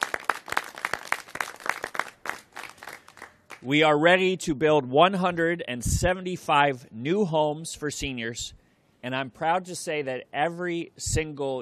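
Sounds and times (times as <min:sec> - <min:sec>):
audience clapping: 0:00.0 - 0:03.7
speech: 0:03.6 - 0:11.6.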